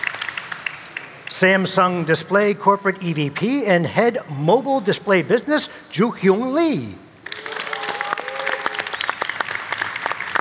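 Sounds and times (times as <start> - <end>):
crowd clapping: 0.0 - 1.4, 7.2 - 10.3
speech: 1.4 - 7.0
cheers and whoops: 7.3 - 9.2.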